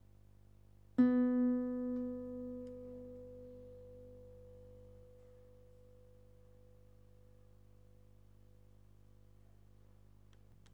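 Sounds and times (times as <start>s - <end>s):
guitar: 1.0s - 7.4s.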